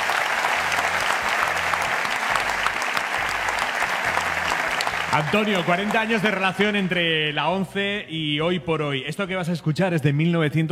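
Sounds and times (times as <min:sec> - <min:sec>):
audience applause: 0:00.0 - 0:07.1
speech: 0:05.2 - 0:10.7.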